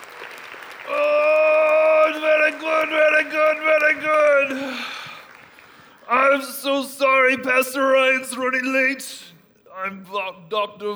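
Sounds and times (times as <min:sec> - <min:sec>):
audience applauding a pastor at a church gathering: 0:00.0 - 0:06.0
speech: 0:07.3 - 0:09.2, 0:09.8 - 0:10.9.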